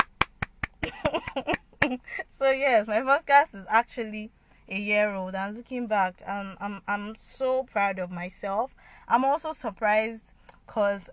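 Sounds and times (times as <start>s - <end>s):
applause: 0.0s - 1.9s
speech: 1.9s - 11.1s.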